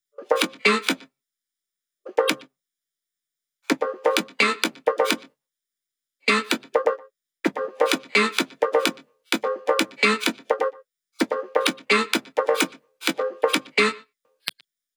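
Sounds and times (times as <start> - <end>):
drum loop: 0.3 - 1.0, 2.2 - 2.5, 3.7 - 5.3, 6.5 - 13.8
percussion: 0.3 - 1.0, 3.7 - 5.3, 6.5 - 13.8.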